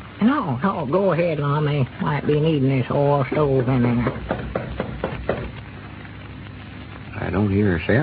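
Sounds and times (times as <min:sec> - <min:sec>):
speech: 0:00.2 - 0:04.6, 0:07.3 - 0:08.0
knocking on a door: 0:03.3 - 0:05.6.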